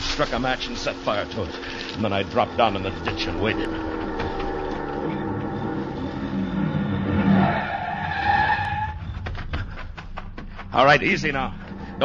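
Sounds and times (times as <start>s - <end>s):
speech: 0.2s - 4.0s, 10.8s - 12.0s
car approaching fast: 0.4s - 9.2s.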